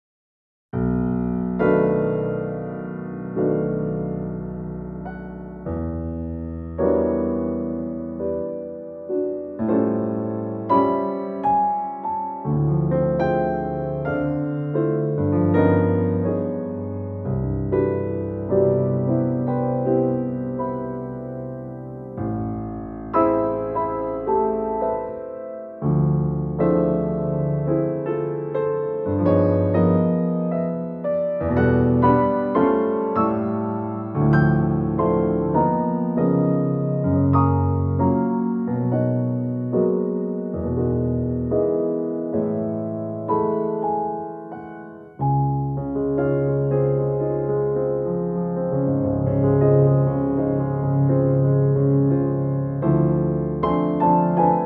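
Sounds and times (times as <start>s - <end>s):
improvised prelude: 0.8s - 54.6s.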